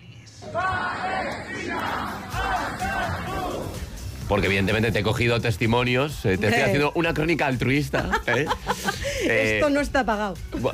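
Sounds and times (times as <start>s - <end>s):
concert audience chanting in unison: 0.4s - 4.0s
speech: 4.3s - 10.7s
laughter: 7.7s - 9.5s.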